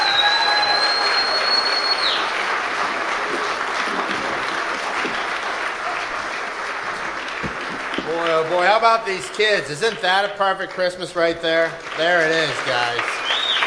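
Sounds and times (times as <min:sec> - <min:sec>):
round of applause: 0:00.0 - 0:13.6
speech: 0:08.8 - 0:13.4.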